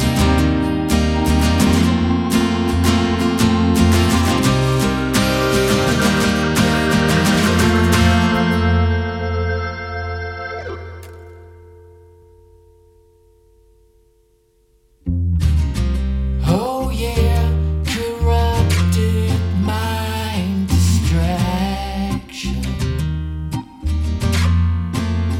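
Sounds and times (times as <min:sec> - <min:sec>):
acoustic session music: 0:00.0 - 0:25.3.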